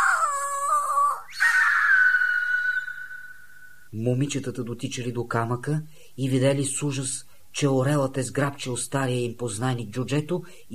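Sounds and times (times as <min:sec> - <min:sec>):
piercing plaintive scream: 0:00.0 - 0:03.9
speech: 0:03.9 - 0:10.7.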